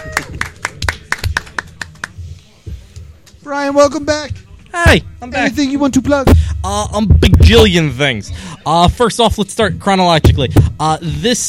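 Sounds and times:
sparse clapping from a small audience for a contestant: 0.1 - 2.2
speech: 3.5 - 11.4.

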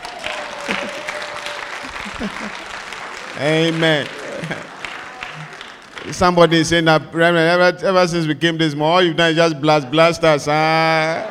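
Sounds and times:
audience clapping: 0.0 - 6.8
laughter: 0.0 - 6.8, 9.2 - 11.2
speech: 2.2 - 2.7, 3.4 - 4.8, 5.4 - 11.2.

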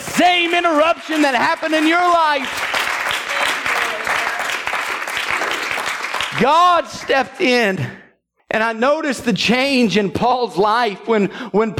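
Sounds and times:
audience clapping hands: 0.0 - 7.9
speech: 0.2 - 2.6, 6.4 - 11.7.

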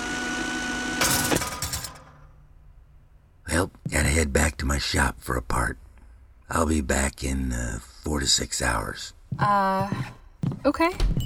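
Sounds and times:
power tools running: 0.0 - 2.3
speech: 4.2 - 5.8, 6.5 - 11.2.

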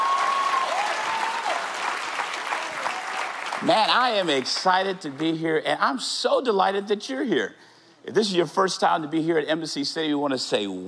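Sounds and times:
church congregation applauding: 0.0 - 5.4
speech: 3.6 - 10.8.

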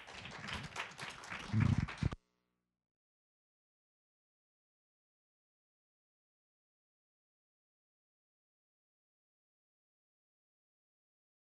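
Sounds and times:
audience applause: 0.0 - 2.2.

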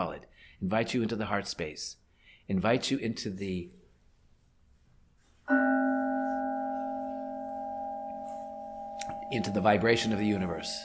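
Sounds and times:
speech: 0.0 - 3.8, 5.5 - 5.8, 9.0 - 10.8
bell struck once: 5.5 - 10.8.

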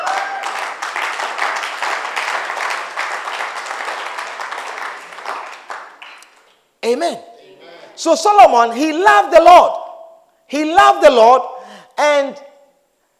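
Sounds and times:
crowd applauding: 0.0 - 6.5
speech: 6.9 - 7.3, 8.0 - 9.8, 10.5 - 12.5.

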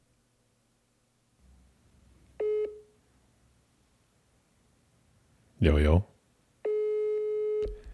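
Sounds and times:
unanswered phone call ringing tone: 2.4 - 2.9, 6.6 - 7.8
speech: 5.6 - 6.1.

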